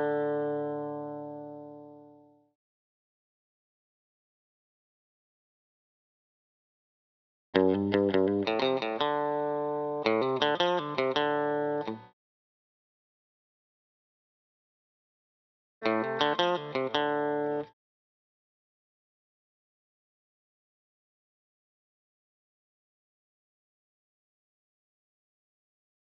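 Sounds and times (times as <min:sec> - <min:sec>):
electric guitar lead fill: 0:00.0 - 0:02.3, 0:07.6 - 0:12.1, 0:15.8 - 0:17.7.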